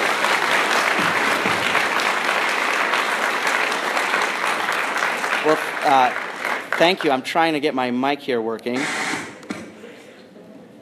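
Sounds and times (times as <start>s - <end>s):
audience applause: 0.0s - 7.5s
speech: 5.5s - 6.2s, 6.8s - 9.0s.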